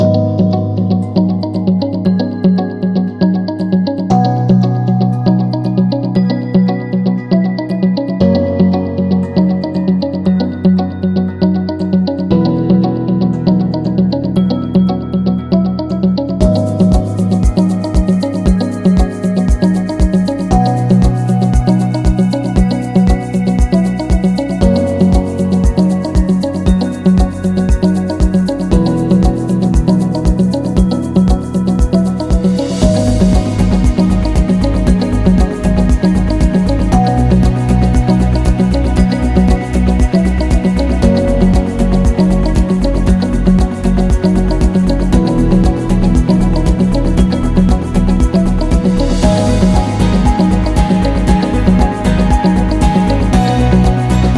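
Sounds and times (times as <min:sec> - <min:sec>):
luxury music: 0:00.0 - 0:54.3.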